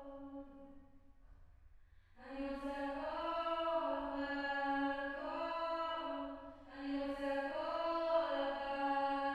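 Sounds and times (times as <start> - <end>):
choir singing: 2.2 - 9.3.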